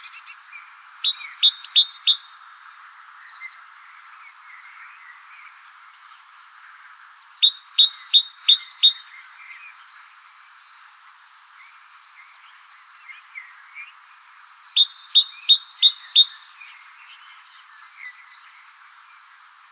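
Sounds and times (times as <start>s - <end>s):
great tit (Parus major) calling: 1.0s - 2.2s, 7.3s - 9.1s, 14.7s - 17.4s.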